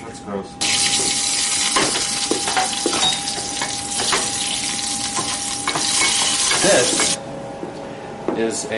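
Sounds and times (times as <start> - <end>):
speech: 0.2 - 0.6, 6.6 - 7.0, 8.4 - 8.7
battered cicadas deep-frying in hot oil: 0.6 - 7.2.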